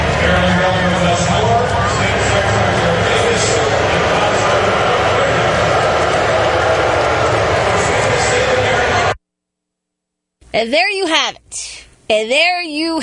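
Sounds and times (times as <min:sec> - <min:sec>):
large crowd booing: 0:00.0 - 0:09.2
scattered applause: 0:00.0 - 0:09.2
speech: 0:10.6 - 0:13.0.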